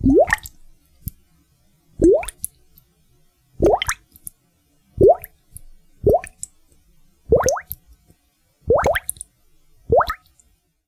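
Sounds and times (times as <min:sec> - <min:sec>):
chain of bubbles: 0:00.0 - 0:00.6, 0:02.0 - 0:02.5, 0:03.6 - 0:04.0, 0:05.0 - 0:05.4, 0:06.0 - 0:06.4, 0:07.3 - 0:07.8, 0:08.7 - 0:09.2, 0:09.9 - 0:10.3.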